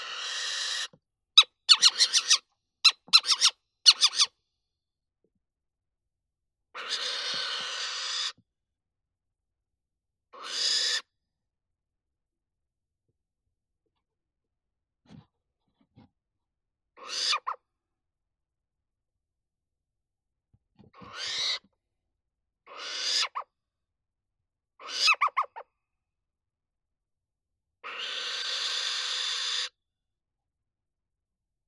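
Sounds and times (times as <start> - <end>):
little owl Athene noctua alarm calls: 0.0 - 4.4, 6.8 - 8.4, 10.3 - 11.1, 17.0 - 17.6, 21.0 - 21.7, 22.7 - 23.5, 24.8 - 25.6, 27.8 - 29.7.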